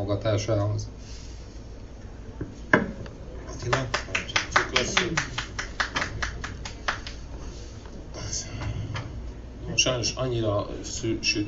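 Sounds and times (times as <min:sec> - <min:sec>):
speech: 0:00.0 - 0:01.2, 0:03.6 - 0:05.5, 0:09.8 - 0:11.4
low murmur: 0:00.0 - 0:11.4
sparse audience applause: 0:03.6 - 0:07.3.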